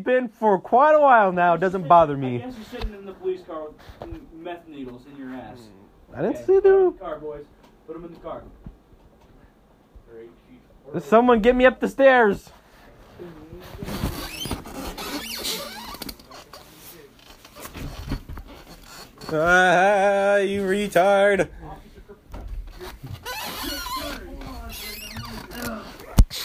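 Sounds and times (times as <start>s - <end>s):
speech: 0.0s - 8.6s, 10.1s - 12.6s, 13.2s - 14.2s, 19.3s - 21.6s
squeaky chair creaking: 13.6s - 21.1s, 22.3s - 26.4s.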